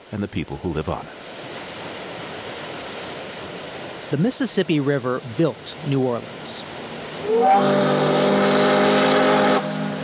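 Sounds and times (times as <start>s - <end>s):
speech: 0.1s - 1.2s, 4.1s - 8.5s
riverboat steam whistle blast: 7.2s - 10.0s.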